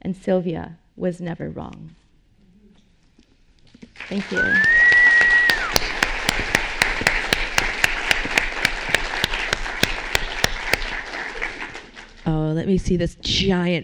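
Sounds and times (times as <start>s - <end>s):
speech: 0.1s - 2.0s, 4.0s - 4.8s, 12.3s - 13.8s
audience applause: 4.0s - 12.2s.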